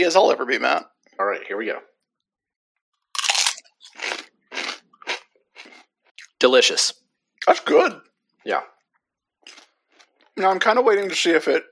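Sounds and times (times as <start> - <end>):
speech: 0.0 - 1.9, 6.4 - 8.7, 10.4 - 11.7
fiery chili limon flavored chip crunching: 3.1 - 5.9.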